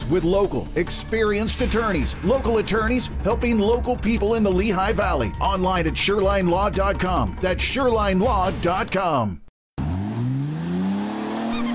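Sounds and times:
speech: 0.1s - 9.4s
car engine revving: 9.8s - 11.7s
tire squeal: 10.0s - 11.7s.

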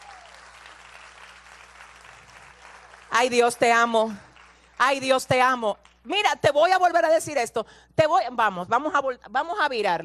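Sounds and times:
applause: 0.0s - 5.0s
speech: 3.1s - 10.0s.

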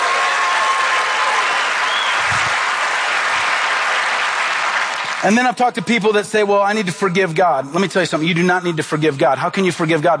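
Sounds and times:
audience applause: 0.0s - 5.5s
speech: 5.2s - 10.1s.

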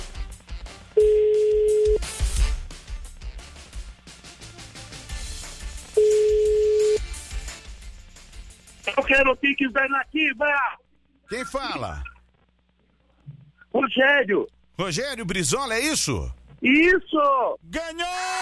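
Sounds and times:
telephone call dialing tones: 1.0s - 2.0s, 6.0s - 7.0s
speech: 9.3s - 12.1s, 13.8s - 18.4s.

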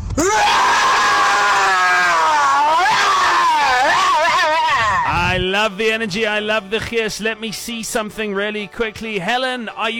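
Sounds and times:
person roaring: 0.2s - 5.4s
speech: 5.6s - 9.9s.

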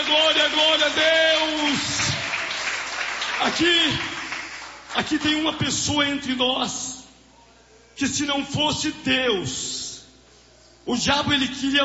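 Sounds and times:
church congregation applauding in praise during a service: 0.0s - 5.9s
speech: 3.4s - 4.1s, 5.0s - 6.9s, 8.0s - 9.8s, 10.9s - 11.8s.

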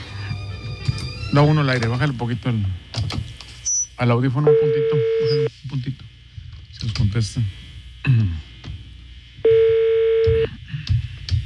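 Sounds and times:
speech: 1.3s - 3.3s, 4.0s - 6.1s, 6.8s - 8.4s
telephone ringback tone on a call: 9.5s - 10.4s.

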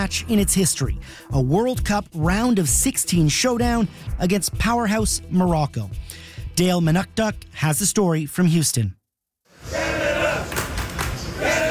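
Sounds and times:
speech: 0.0s - 9.0s
Canadian soccer fans chanting in the streets of downtown Houston: 9.6s - 11.6s.

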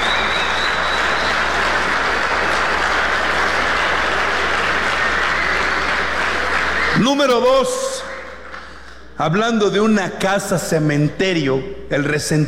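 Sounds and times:
crowd applauding: 0.0s - 9.0s
speech: 7.0s - 7.8s, 9.2s - 12.4s.

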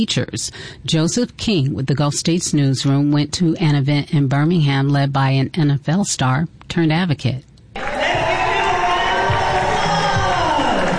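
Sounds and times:
speech: 0.0s - 8.1s
middle school students cheering at J.H. Phillips Academy in Birmingham: 7.8s - 10.9s.

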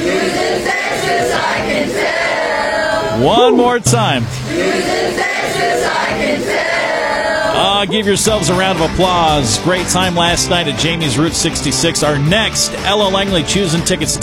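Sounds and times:
large crowd singing along at live event: 0.0s - 8.2s
single voice calling out with rising sustained tones: 3.2s - 4.3s
speech: 3.2s - 5.0s, 7.6s - 14.2s.

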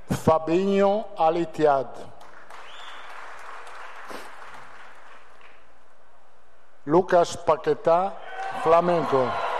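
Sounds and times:
speech: 0.2s - 2.1s, 6.9s - 9.4s
crowd applauding a player: 2.2s - 5.6s, 8.4s - 9.5s.

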